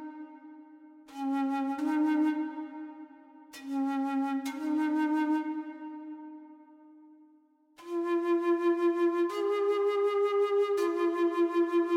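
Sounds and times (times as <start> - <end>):
Native American flute playing: 1.1 - 6.5, 7.8 - 11.9.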